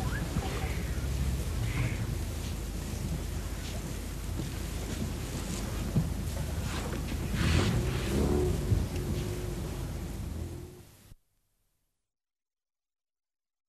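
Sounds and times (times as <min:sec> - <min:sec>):
African bush elephant rumbling low: 0:00.0 - 0:10.9.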